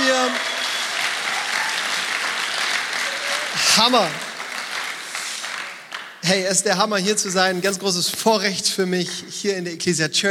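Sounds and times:
church audience applauding: 0.0 - 6.4
speech: 3.8 - 4.3, 6.2 - 10.3.

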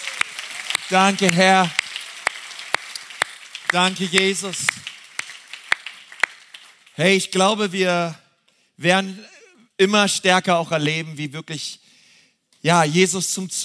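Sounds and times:
crowd applauding: 0.0 - 7.6
speech: 0.9 - 1.8, 3.7 - 4.8, 7.0 - 8.2, 8.8 - 11.8, 12.6 - 13.6.

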